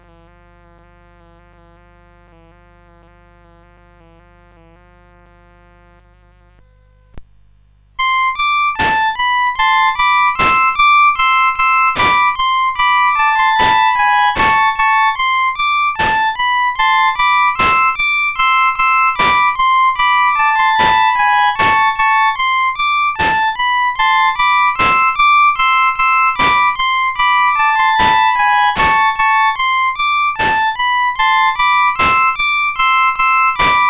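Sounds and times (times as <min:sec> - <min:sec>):
courante on CSG8580 chip: 0:08.0 - 0:33.8.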